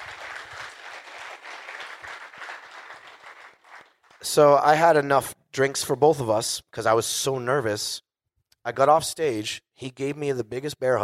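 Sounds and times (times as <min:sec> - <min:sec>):
audience applause: 0:00.0 - 0:04.3
speech: 0:04.2 - 0:11.0.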